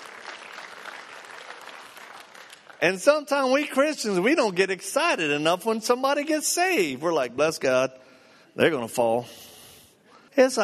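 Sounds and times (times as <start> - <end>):
people clapping: 0.0 - 3.7
speech: 2.8 - 9.5, 10.4 - 10.6.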